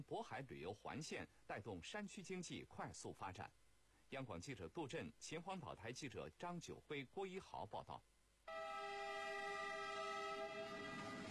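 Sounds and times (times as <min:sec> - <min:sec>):
speech: 0:00.0 - 0:08.1
tourist train horn blast: 0:08.5 - 0:11.2
tourist train rumbling on the Qinhuangdao mountain-and-sea tourist railway in Hebei China: 0:09.2 - 0:11.2.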